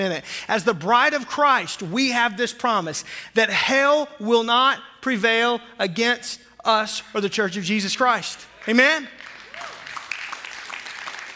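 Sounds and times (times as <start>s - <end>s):
speech: 0.0s - 9.3s
audience clapping: 8.5s - 11.3s.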